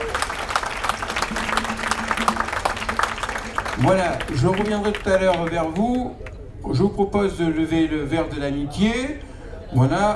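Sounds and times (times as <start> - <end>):
audience applause: 0.0 - 6.3
speech: 3.8 - 10.1.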